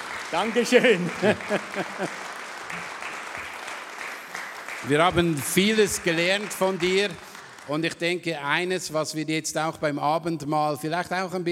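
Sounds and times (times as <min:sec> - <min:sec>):
audience applause: 0:00.0 - 0:08.2
speech: 0:00.3 - 0:02.9, 0:04.8 - 0:11.4
laughter: 0:00.4 - 0:02.9.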